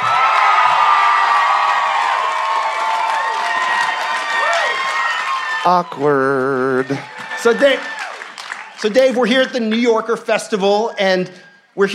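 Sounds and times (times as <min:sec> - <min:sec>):
crowd cheering with whoops: 0:00.0 - 0:09.2
crowd clapping: 0:00.0 - 0:10.4
speech: 0:05.6 - 0:08.0, 0:08.8 - 0:11.9.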